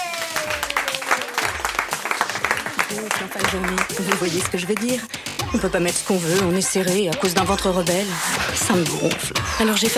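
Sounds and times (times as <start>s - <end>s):
audience applause: 0.0s - 5.1s
speech: 3.0s - 9.9s.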